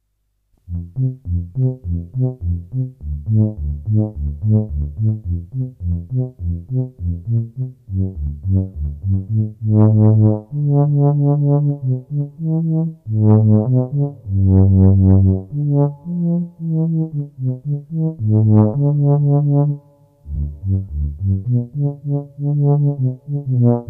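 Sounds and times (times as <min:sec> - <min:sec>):
tuba: 0:00.6 - 0:23.8.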